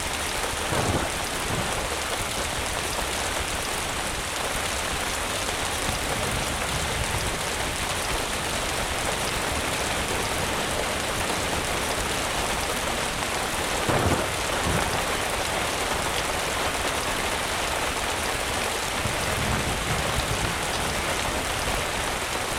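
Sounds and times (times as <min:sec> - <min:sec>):
thunderstorm: 0:00.2 - 0:16.9, 0:17.6 - 0:22.4.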